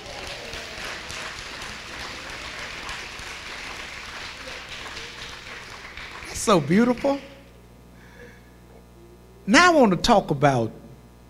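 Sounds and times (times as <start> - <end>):
audience clapping hands: 0.0 - 7.5
speech: 6.4 - 7.3, 9.5 - 10.8.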